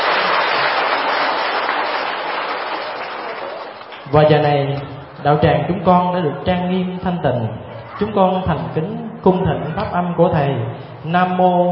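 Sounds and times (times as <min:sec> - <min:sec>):
assembly applauding in a Buddhist monastery lecture hall: 0:00.0 - 0:04.4
speech: 0:04.1 - 0:11.7.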